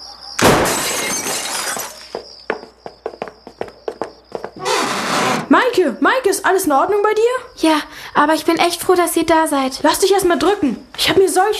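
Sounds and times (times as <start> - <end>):
cellar window glass shattering as it is broken open: 0.4 - 2.2
speech: 5.6 - 11.5.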